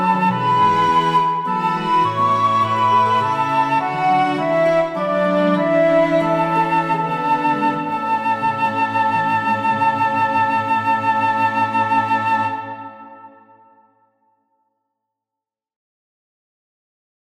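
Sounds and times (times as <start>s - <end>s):
small ensemble playing: 0.0s - 13.6s.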